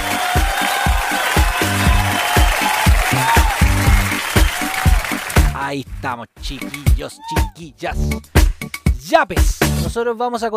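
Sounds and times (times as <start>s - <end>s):
applause: 0.0s - 5.6s
rhythmic musical backing with thumping low beat: 0.0s - 10.0s
speech: 5.7s - 8.4s, 9.1s - 10.5s.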